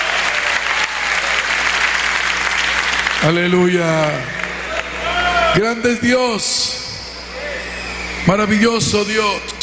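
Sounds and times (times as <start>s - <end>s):
audience clapping loudly: 0.0s - 5.0s
speech: 3.2s - 4.4s, 5.5s - 6.9s, 8.2s - 9.5s.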